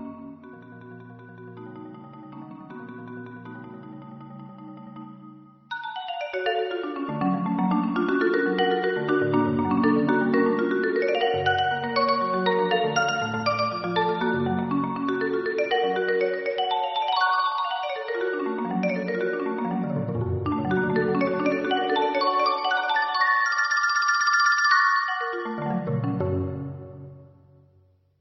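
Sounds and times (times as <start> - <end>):
marimba fantasy: 5.8 - 27.2.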